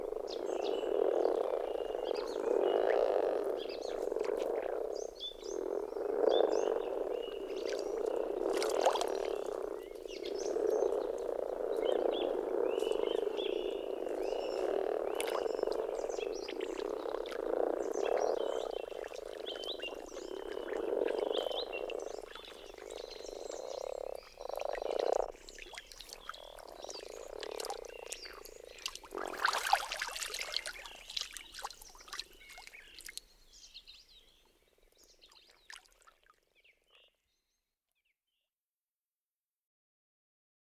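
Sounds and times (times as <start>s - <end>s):
bird calls: 0.0s - 35.8s
common frog chorus croaking: 0.0s - 36.0s
splashing: 7.1s - 10.1s, 12.8s - 23.5s, 24.5s - 33.5s, 35.5s - 36.3s.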